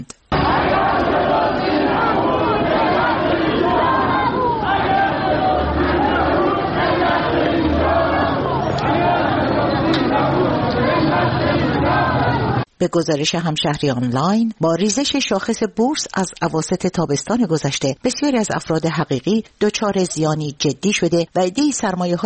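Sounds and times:
protesting crowd shouting outside stock exchange building: 0.3s - 12.7s
speech: 12.8s - 22.2s.

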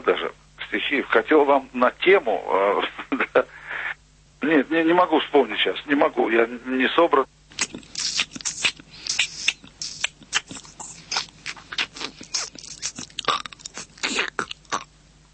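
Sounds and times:
speech: 0.1s - 3.5s, 4.5s - 7.4s
voice imitating cicadas and praying mantis: 7.5s - 14.9s.

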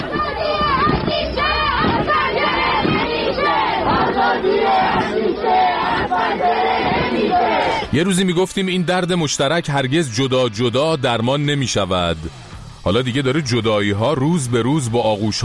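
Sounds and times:
large crowd chanting a protest slogan at night: 0.0s - 8.7s
speech: 7.9s - 15.4s.

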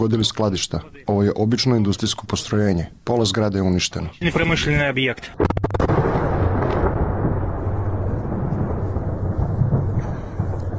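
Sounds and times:
speech: 0.0s - 5.5s
Russian missile strike explosions rumbling: 5.3s - 10.7s.

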